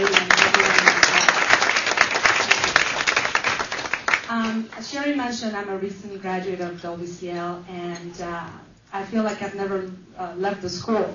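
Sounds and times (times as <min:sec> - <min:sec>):
audience applause: 0:00.0 - 0:04.3
speech: 0:04.8 - 0:11.1.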